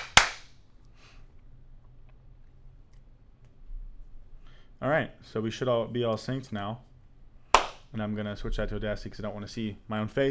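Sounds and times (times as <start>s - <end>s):
hand claps for audio sync: 0.0s - 0.5s, 7.5s - 7.9s
speech: 4.8s - 6.9s, 7.9s - 10.2s.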